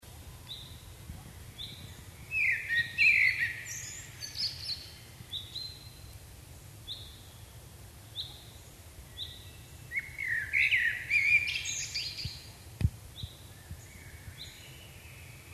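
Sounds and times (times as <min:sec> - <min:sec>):
common blackbird Turdus merula singing: 0:01.6 - 0:06.0, 0:08.1 - 0:12.5, 0:13.2 - 0:15.5.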